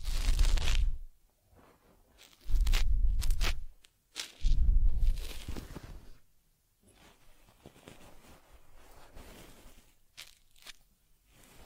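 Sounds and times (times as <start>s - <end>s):
fur combing on a teddy bear: 0.0s - 1.0s, 1.6s - 6.2s, 6.9s - 11.6s.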